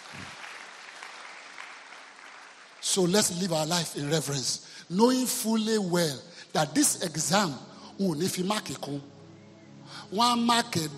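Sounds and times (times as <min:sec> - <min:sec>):
church congregation clapping hands during a sermon: 0:00.0 - 0:03.8
speech: 0:02.9 - 0:09.1, 0:09.9 - 0:10.9.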